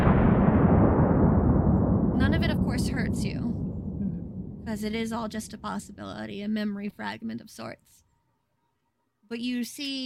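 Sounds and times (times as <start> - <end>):
explosion sound effect: 0.0 - 6.5
speech: 4.7 - 8.0, 9.3 - 10.0.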